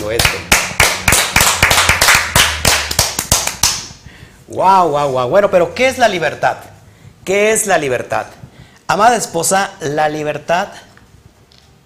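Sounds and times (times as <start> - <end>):
applause, hand clapping: 0.0 - 4.0
speech: 0.1 - 0.5, 4.6 - 10.9.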